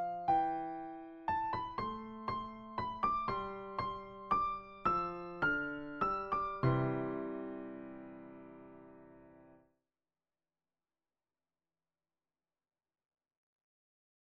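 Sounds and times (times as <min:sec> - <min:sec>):
piano waltz: 0:00.0 - 0:09.6.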